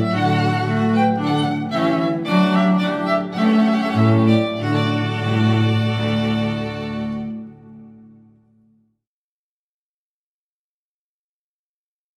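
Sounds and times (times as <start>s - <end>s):
string quartet: 0.0s - 8.2s.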